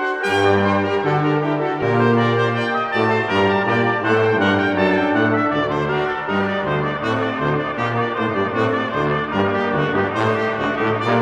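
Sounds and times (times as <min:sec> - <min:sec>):
organ fugue in G minor: 0:00.1 - 0:11.2.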